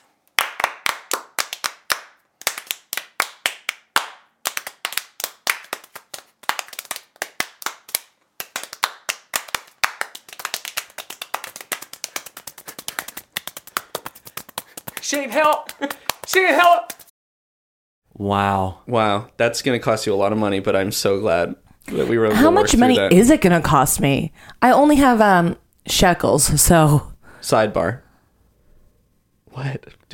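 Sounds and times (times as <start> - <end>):
applause sound effect track: 0.4 - 17.1
speech: 15.1 - 16.9, 18.2 - 28.0, 29.6 - 30.1.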